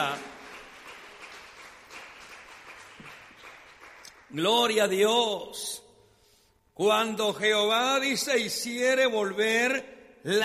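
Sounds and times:
audience applause: 0:00.0 - 0:04.3
speech: 0:04.3 - 0:05.8, 0:06.8 - 0:10.4.

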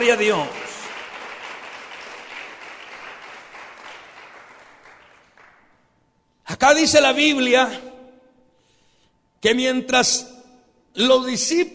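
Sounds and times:
speech: 0:00.0 - 0:00.6, 0:06.6 - 0:07.9, 0:09.4 - 0:10.3, 0:10.9 - 0:11.7
audience applause: 0:00.0 - 0:05.8.

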